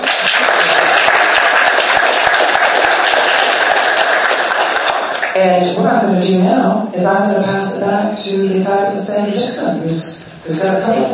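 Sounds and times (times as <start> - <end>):
audience applause: 0.0 - 5.4
speech: 5.4 - 11.1.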